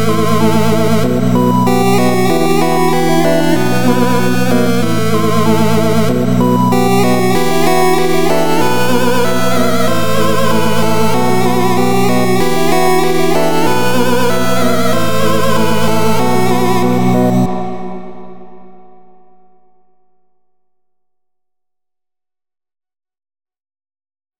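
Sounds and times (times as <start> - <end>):
level background music: 0.0 - 19.5.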